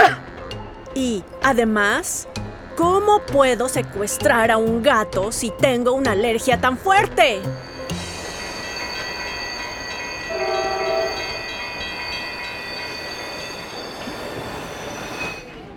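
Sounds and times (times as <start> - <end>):
speech: 1.0 - 8.0
train screeching to a halt at the station: 7.5 - 15.7.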